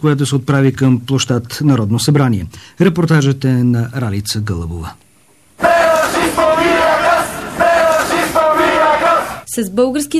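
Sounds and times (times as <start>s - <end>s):
speech: 0.0s - 5.0s, 9.5s - 10.1s
protest crowd chanting: 5.6s - 9.5s.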